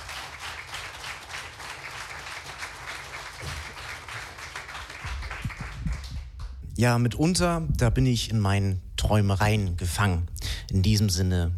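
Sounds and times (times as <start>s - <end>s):
audience applause: 0.0s - 6.6s
speech: 6.8s - 11.5s.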